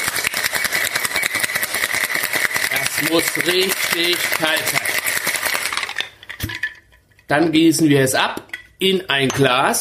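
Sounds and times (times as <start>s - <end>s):
cocktail shaker with ice shaking: 0.0s - 7.3s
speech: 3.0s - 5.0s, 7.3s - 9.7s.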